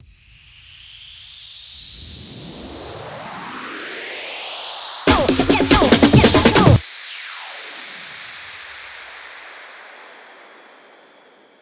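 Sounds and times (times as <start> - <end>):
140 BPM hands up and trance fills: 5.1 - 6.8.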